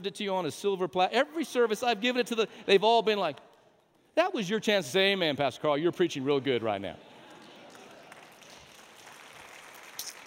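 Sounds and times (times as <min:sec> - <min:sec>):
speech: 0:00.0 - 0:03.5, 0:04.2 - 0:07.1
timid audience clapping: 0:07.2 - 0:10.2.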